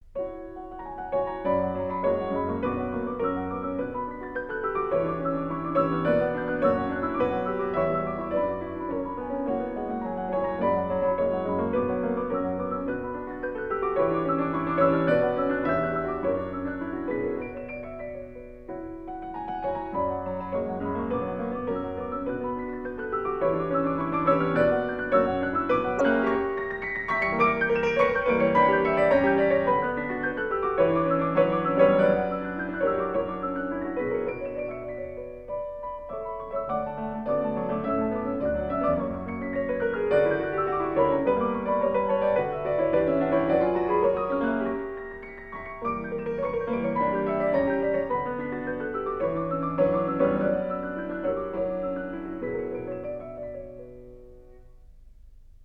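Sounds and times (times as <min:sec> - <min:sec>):
piano four hands piece in B minor: 0:00.0 - 0:55.6.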